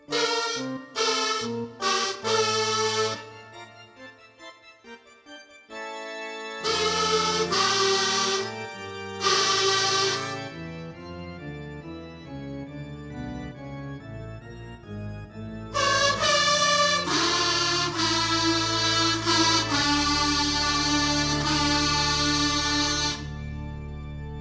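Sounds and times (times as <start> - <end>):
kazoos: 0.0 - 3.6, 6.6 - 10.6, 15.8 - 23.4
organ: 0.0 - 24.3.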